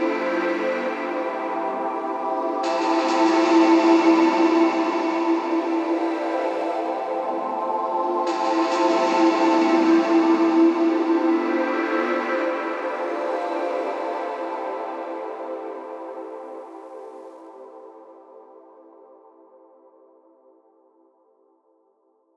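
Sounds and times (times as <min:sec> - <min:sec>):
breath of air synth pads: 0:00.0 - 0:15.2.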